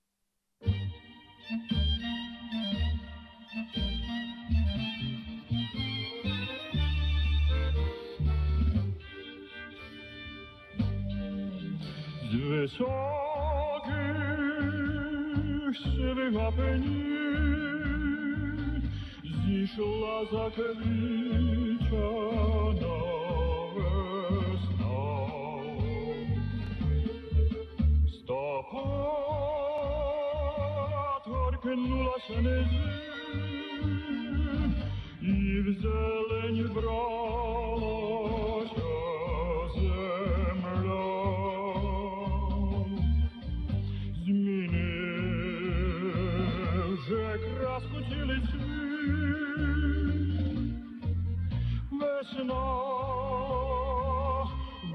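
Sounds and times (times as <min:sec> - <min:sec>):
Ukrainian tango music: 0:00.6 - 0:54.9.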